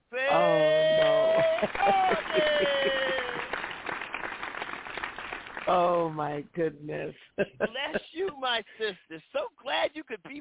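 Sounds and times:
people clapping: 0.3 - 6.0
laughter: 0.4 - 3.6, 7.4 - 8.9
speech: 1.6 - 2.1, 6.2 - 10.3.

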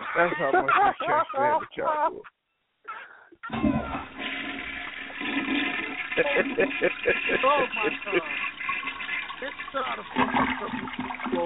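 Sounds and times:
voices talking and laughing: 0.0 - 2.4, 6.1 - 8.5
speech: 0.2 - 2.4, 3.4 - 4.2, 6.2 - 8.6, 9.4 - 11.4
toilet flushing: 3.5 - 11.4.

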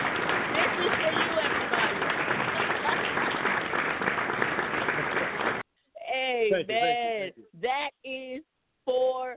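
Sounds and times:
crowd applauding: 0.0 - 5.6
speech: 6.5 - 9.3.

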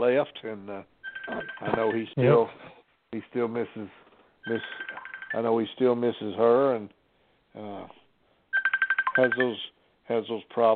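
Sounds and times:
speech: 0.0 - 7.0, 7.6 - 8.0, 9.2 - 10.7
telephone ringing with an electronic trill: 1.0 - 2.1, 4.4 - 5.5, 8.5 - 9.6.

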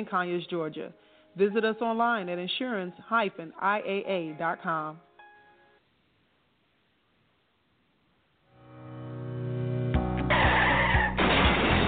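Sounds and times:
speech: 0.0 - 5.1
car tires screeching in an auto accident: 10.3 - 11.2
harsh noisy grinding bursts in an auto accident: 10.3 - 11.8.

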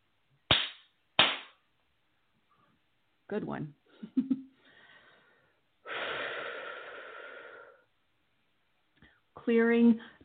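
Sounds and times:
hands clapping at back of head: 0.5 - 1.6
speech: 3.3 - 4.5, 9.5 - 10.2.

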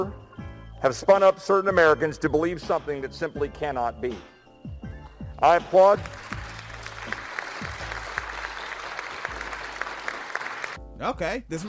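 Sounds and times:
speech: 0.0 - 0.2, 0.8 - 4.8, 5.4 - 6.3, 11.0 - 11.6
applause: 5.8 - 10.8.

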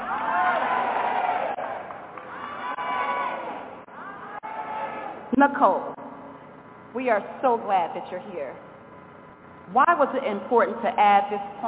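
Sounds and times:
audience screaming and cheering: 0.0 - 5.2
speech: 5.3 - 6.0, 6.9 - 8.7, 9.7 - 11.6.

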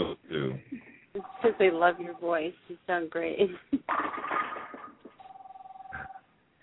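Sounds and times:
telephone ringing: 1.2 - 2.4, 5.1 - 6.2
speech: 1.6 - 3.8.

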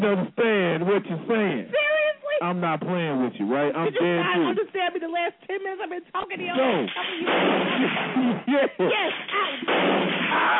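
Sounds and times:
speech: 0.0 - 10.5
gunshots: 6.6 - 8.3, 9.1 - 10.5.

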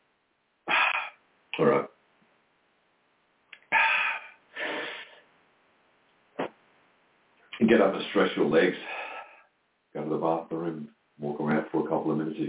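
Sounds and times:
nose blowing: 0.7 - 1.2, 3.7 - 5.2
speech: 1.6 - 1.9, 7.7 - 9.0, 10.0 - 12.4.

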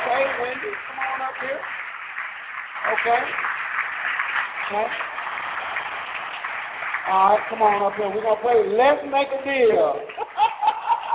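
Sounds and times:
audience applause: 0.0 - 11.1
speech: 0.2 - 1.8, 2.8 - 5.2, 7.1 - 10.2
laughter: 10.1 - 11.1.

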